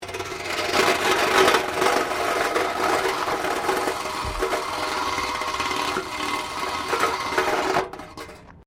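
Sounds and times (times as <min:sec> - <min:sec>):
metal bin lid scraping a wire fence: 0:00.0 - 0:08.6.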